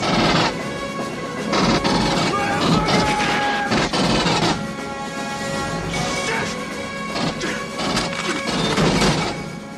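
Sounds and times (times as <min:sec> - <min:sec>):
rotary machine gun fire: 0:00.0 - 0:00.6, 0:01.5 - 0:04.6, 0:07.2 - 0:09.4
action film score: 0:00.0 - 0:09.7.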